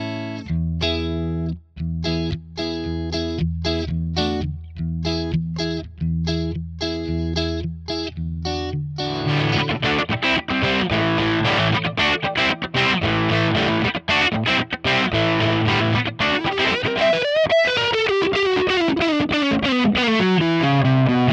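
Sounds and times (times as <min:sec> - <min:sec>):
Fender Stratocaster electric guitar: 0:00.0 - 0:21.3.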